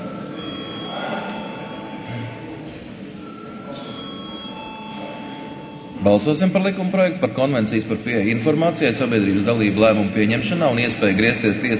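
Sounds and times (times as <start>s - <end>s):
faint murmuring voices: 0.0s - 11.7s
parliament voting electric bell ringing: 0.1s - 2.2s, 3.2s - 6.3s
speech: 6.0s - 11.7s.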